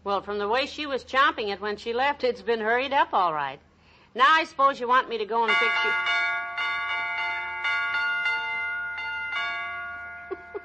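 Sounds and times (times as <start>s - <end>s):
speech: 0.0s - 6.3s
doorbell chiming a jingle-like tune: 5.5s - 10.6s.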